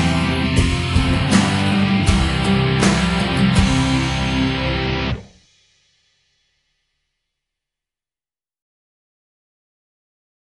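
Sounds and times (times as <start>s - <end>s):
musical accompaniment stems: 0.0s - 5.4s.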